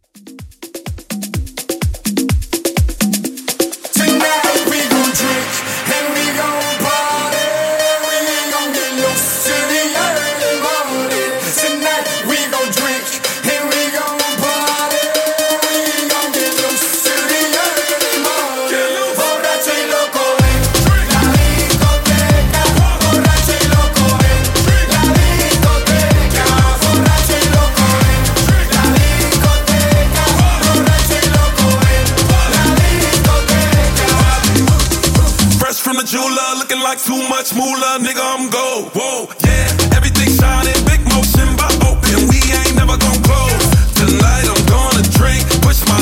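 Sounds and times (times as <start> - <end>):
dirty Afro club music: 0.0 - 46.0.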